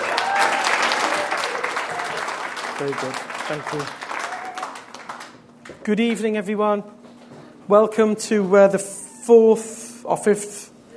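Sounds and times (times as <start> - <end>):
applause: 0.0 - 5.5
speech: 2.8 - 4.0, 5.8 - 7.0, 7.7 - 10.6.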